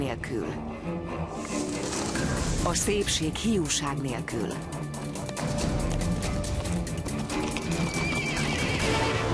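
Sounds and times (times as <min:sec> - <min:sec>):
speech: 0:00.1 - 0:04.8
horses galloping at the Nemzeti Vágta festival on Heroes' Square, Budapest: 0:03.6 - 0:09.2
horses neighing at the Nemzeti Vágta festival on Heroes' Square, Budapest: 0:05.0 - 0:09.2.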